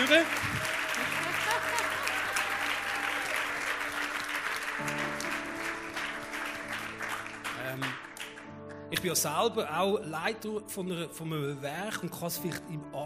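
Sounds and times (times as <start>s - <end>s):
audience applause: 0.0s - 8.5s
speech: 9.0s - 13.0s.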